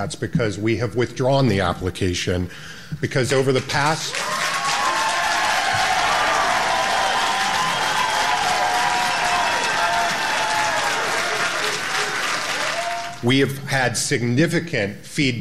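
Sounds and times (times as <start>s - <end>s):
speech: 0.0s - 4.5s, 13.2s - 15.3s
crowd cheering: 4.1s - 13.3s.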